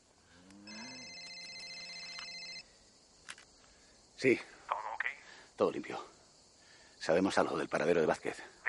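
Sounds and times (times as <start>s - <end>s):
telephone ringing: 0.7s - 2.6s
speech: 4.2s - 4.6s, 5.6s - 6.2s, 7.0s - 8.6s.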